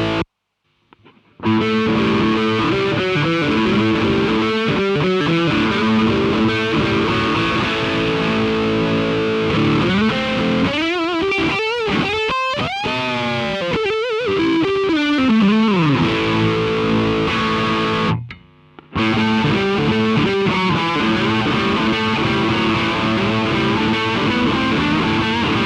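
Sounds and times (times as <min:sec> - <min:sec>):
electric guitar through Alnico II Pro pickup with drive: 0:00.0 - 0:00.3, 0:01.0 - 0:25.6.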